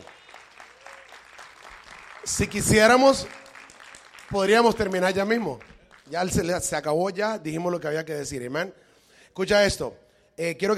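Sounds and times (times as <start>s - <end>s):
audience applause: 0.0s - 6.2s
speech: 2.2s - 3.4s, 4.3s - 8.8s, 9.4s - 10.7s.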